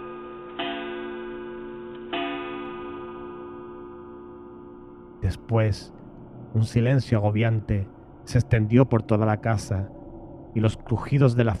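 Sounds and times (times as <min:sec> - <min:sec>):
wall clock chiming: 0:00.0 - 0:04.8
hum: 0:00.0 - 0:11.5
speech: 0:05.2 - 0:11.5.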